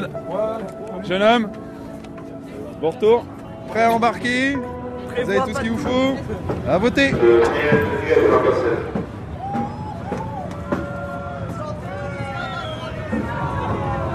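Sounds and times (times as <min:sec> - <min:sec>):
speech: 0:01.0 - 0:01.6, 0:02.8 - 0:09.0
crowd shouting: 0:07.2 - 0:14.1.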